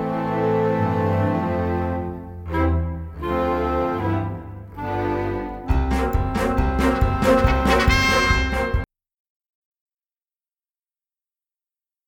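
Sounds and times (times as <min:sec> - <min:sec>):
backing music: 0:00.0 - 0:08.9.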